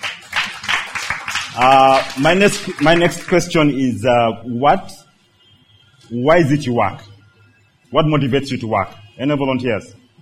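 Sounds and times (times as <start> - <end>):
audience clapping for a volunteer at a faith-based talk: 0.0 - 3.6
speech: 1.6 - 5.0, 6.1 - 7.1, 7.9 - 10.0.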